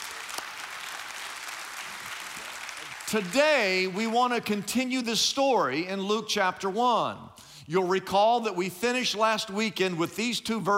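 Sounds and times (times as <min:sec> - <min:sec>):
audience clapping: 0:00.0 - 0:04.5
speech: 0:03.1 - 0:10.7.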